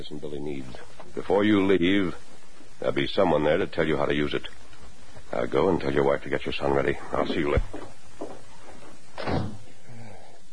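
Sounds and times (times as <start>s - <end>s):
speech: 0.0s - 4.6s, 5.3s - 8.0s
door closing: 9.1s - 9.7s.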